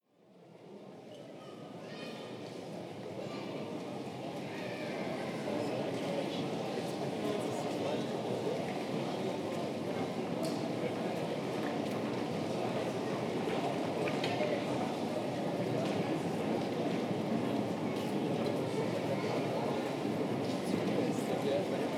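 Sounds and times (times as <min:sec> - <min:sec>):
train station in Braunschweig: 0:00.2 - 0:21.9.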